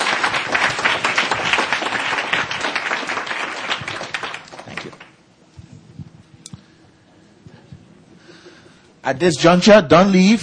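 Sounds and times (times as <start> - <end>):
audience applause: 0.0 - 5.2
speech: 9.1 - 10.4.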